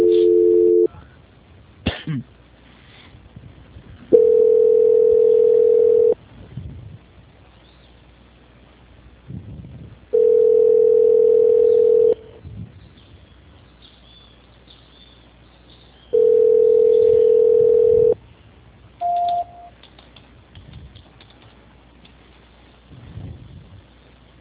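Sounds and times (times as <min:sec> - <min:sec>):
telephone call transfer beeps: 0:00.0 - 0:00.9, 0:04.2 - 0:06.2, 0:10.2 - 0:12.2, 0:16.2 - 0:18.2, 0:19.0 - 0:19.7.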